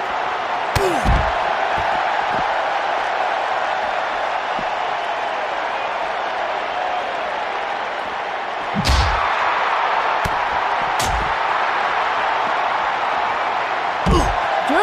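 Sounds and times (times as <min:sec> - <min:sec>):
crowd noise: 0:00.0 - 0:14.8
wrestling German suplex slam: 0:00.7 - 0:02.6, 0:08.7 - 0:09.5, 0:10.2 - 0:11.5.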